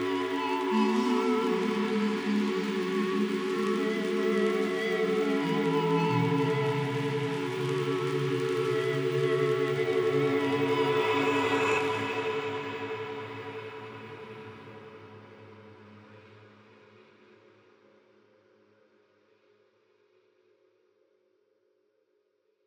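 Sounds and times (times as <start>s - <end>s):
fluid flowing synth pads: 0.0s - 15.1s.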